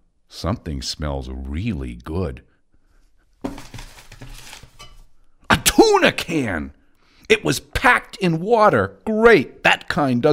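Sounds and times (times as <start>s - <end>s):
speech: 0.4s - 2.5s, 5.9s - 10.3s
pedal bin lid springing up as its foot pedal is pressed: 3.4s - 5.0s
low rustling noise: 3.4s - 5.2s.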